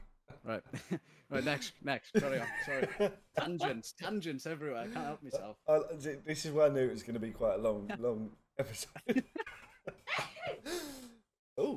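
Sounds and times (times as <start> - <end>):
speech: 0.4 - 11.7
short breathy gasps: 10.6 - 11.3.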